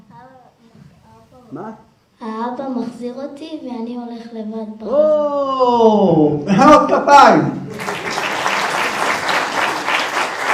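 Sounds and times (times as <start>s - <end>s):
speech: 1.5s - 7.8s
applause from a group: 7.7s - 10.5s.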